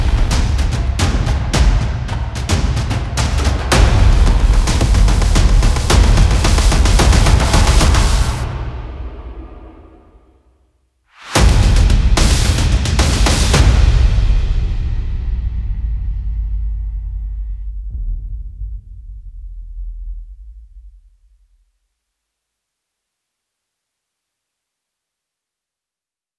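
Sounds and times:
percussion: 0.0s - 10.4s, 11.1s - 21.2s.

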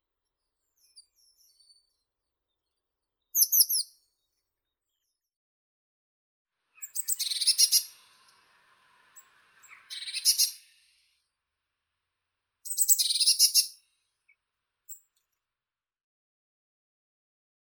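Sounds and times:
blue tit Cyanistes caeruleus: 3.3s - 4.2s, 6.8s - 8.4s, 9.2s - 11.0s, 12.6s - 13.8s.

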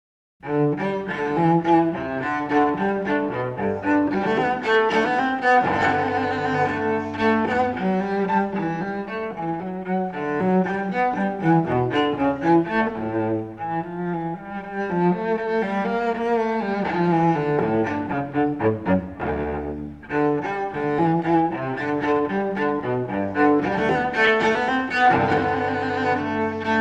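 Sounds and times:
cello suite gigue: 0.4s - 26.8s.

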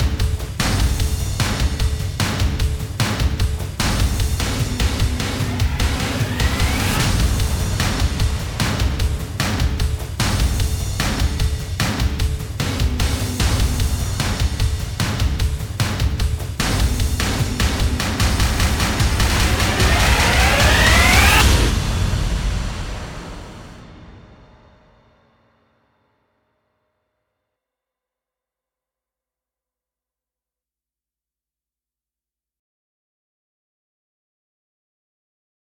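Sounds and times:
percussion: 0.0s - 24.8s.

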